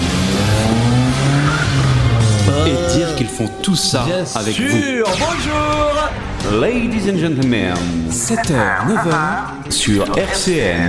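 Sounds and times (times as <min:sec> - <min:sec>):
car engine roaring as the car pulls away: 0:00.0 - 0:04.6
tires squealing and whining: 0:00.0 - 0:04.7
speech: 0:02.7 - 0:10.8.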